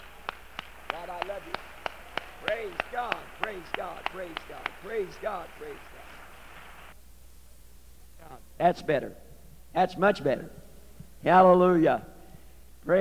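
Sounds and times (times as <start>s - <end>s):
rhythmic hand claps: 0.0s - 6.8s
speech: 1.0s - 1.8s, 2.4s - 5.9s, 8.3s - 10.6s, 11.2s - 12.1s.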